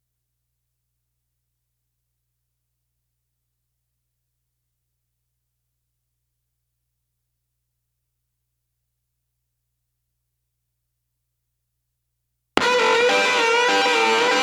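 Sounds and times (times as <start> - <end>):
lead guitar: 12.6 - 14.4.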